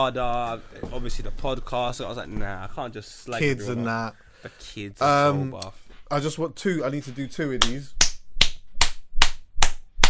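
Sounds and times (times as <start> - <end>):
speech: 0.0 - 8.0
hand claps: 7.6 - 10.0.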